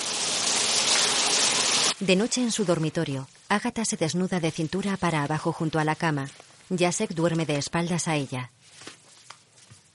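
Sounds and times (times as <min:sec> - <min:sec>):
shower running: 0:00.0 - 0:03.0
speech: 0:02.0 - 0:09.0.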